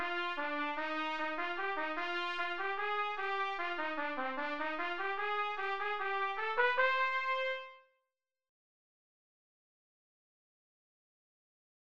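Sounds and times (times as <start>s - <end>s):
trumpet playing an etude: 0.0s - 7.9s.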